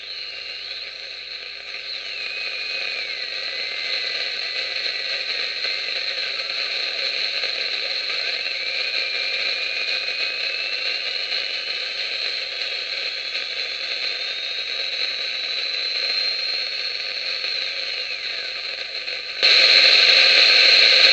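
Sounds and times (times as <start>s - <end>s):
walkie-talkie interference: 0.0s - 21.1s.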